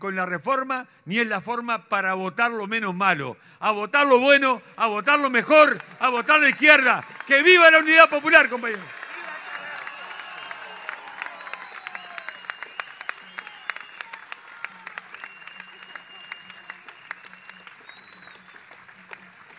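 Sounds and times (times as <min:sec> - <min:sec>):
speech: 0:00.0 - 0:09.0
crowd at a political campaign rally applauding a deputy: 0:04.8 - 0:19.5
scattered whistles: 0:08.9 - 0:19.5.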